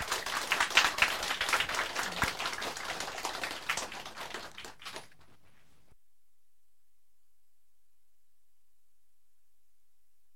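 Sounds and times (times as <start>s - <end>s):
audience applause: 0.0s - 5.2s.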